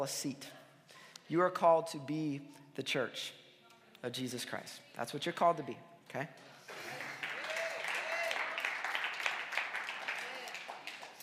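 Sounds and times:
speech: 0.0 - 0.6, 1.3 - 3.4, 4.0 - 6.5
audience clapping: 6.7 - 11.2.

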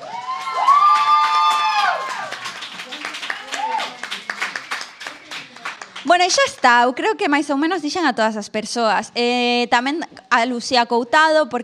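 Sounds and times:
audience applauding and cheering: 0.0 - 6.7
speech: 6.2 - 11.6.

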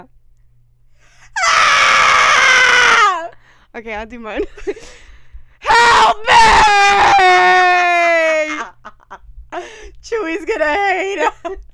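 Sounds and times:
person imitating a horror-movie scream: 1.4 - 3.3, 5.7 - 8.7
speech: 3.7 - 5.0, 6.1 - 7.0, 10.0 - 11.7.

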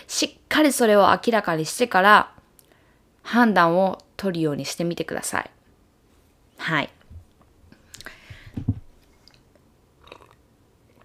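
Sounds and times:
speech: 0.2 - 2.4, 3.2 - 5.6, 6.6 - 7.0
person sipping coffee, slurping and swallowing: 9.2 - 10.4.

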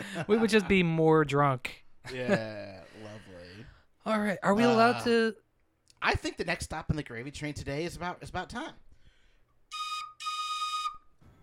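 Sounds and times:
speech: 0.0 - 3.3, 4.0 - 5.4, 6.0 - 8.8
train whistle: 9.7 - 11.2.

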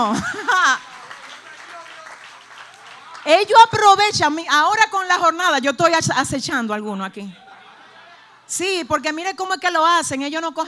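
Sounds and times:
speech: 0.0 - 0.9, 3.2 - 7.4, 8.5 - 10.6
laughter: 0.0 - 3.2, 7.4 - 8.4
audience applause: 0.2 - 3.6.

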